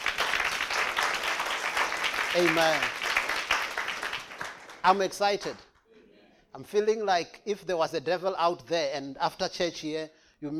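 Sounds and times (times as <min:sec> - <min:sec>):
audience clapping hands: 0:00.0 - 0:05.9
speech: 0:02.3 - 0:03.0, 0:04.8 - 0:05.6, 0:06.6 - 0:10.5.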